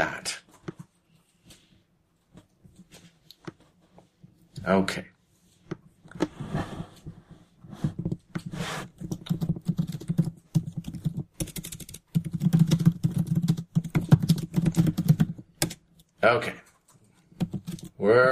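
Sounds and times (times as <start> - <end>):
speech: 4.7 - 5.1, 16.3 - 16.6
fast typing on a computer keyboard: 9.0 - 15.9, 16.7 - 18.0.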